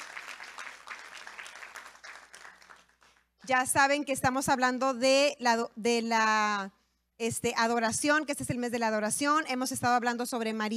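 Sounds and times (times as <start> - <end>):
audience applause: 0.0 - 3.1
speech: 3.5 - 10.7.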